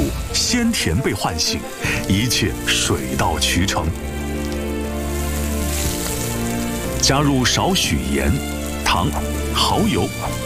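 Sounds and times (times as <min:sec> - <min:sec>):
sea snail meat stir-frying in a wok over high heat: 0:00.0 - 0:10.4
speech: 0:00.5 - 0:04.2, 0:07.1 - 0:10.4.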